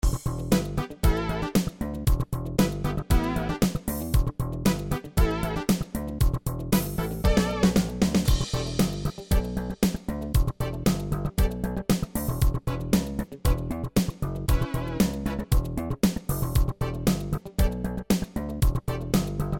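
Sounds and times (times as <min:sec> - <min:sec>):
jam session: 0:00.0 - 0:19.5.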